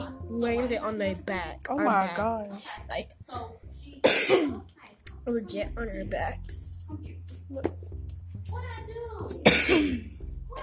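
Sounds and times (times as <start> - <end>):
speech: 0.4 - 10.6
person coughing: 4.0 - 4.6, 9.4 - 10.1.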